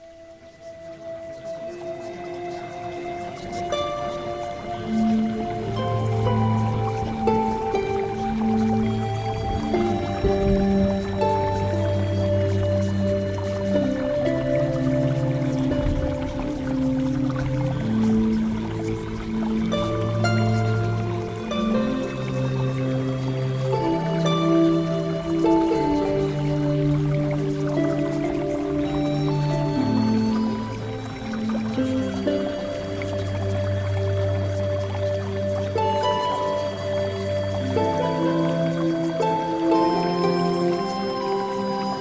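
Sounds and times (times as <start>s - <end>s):
music: 0.0s - 42.0s.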